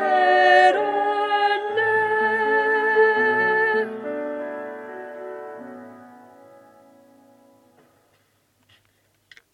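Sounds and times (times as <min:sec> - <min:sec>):
alto voice singing duet part: 0:00.0 - 0:05.0.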